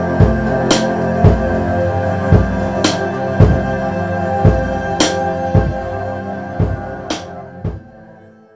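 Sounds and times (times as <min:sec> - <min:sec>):
drums mix: 0:00.1 - 0:01.6, 0:02.3 - 0:03.8, 0:04.4 - 0:05.8, 0:06.6 - 0:07.8.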